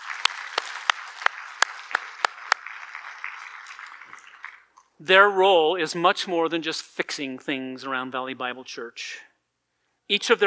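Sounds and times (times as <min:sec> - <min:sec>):
audience applause: 0:00.0 - 0:04.7
speech: 0:05.0 - 0:09.3, 0:10.1 - 0:10.4.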